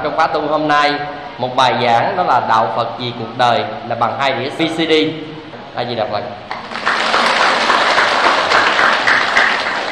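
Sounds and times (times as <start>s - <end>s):
speech: 0.0s - 6.8s
crowd applause: 6.5s - 9.8s.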